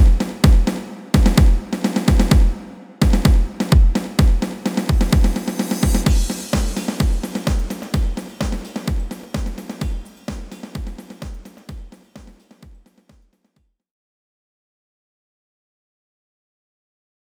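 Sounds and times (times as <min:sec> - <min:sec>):
drum solo: 0:00.0 - 0:12.8.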